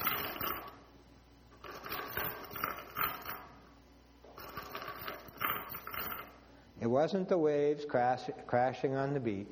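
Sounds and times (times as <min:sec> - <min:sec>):
metal chains clanking and rattling: 0:00.0 - 0:00.8, 0:01.6 - 0:03.5, 0:04.4 - 0:06.4
speech: 0:06.8 - 0:09.5.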